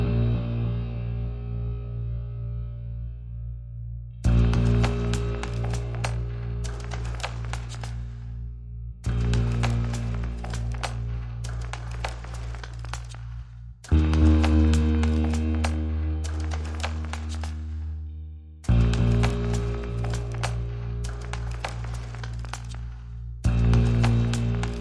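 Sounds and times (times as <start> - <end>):
bass: 0.0 - 24.7
drums: 4.3 - 8.2, 9.0 - 17.9, 18.6 - 24.7.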